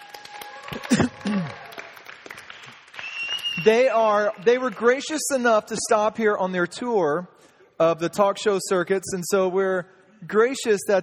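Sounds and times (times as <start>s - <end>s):
audience applause: 0.0s - 4.4s
speech: 3.6s - 11.0s.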